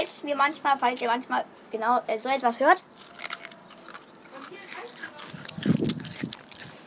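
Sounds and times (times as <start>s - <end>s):
speech: 0.2s - 3.3s
eating ice cream, biting and chewing: 2.7s - 6.8s.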